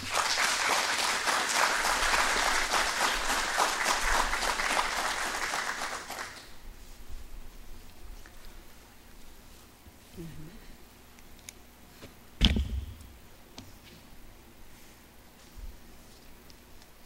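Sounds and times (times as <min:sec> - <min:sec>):
round of applause from a group: 0:00.0 - 0:06.5.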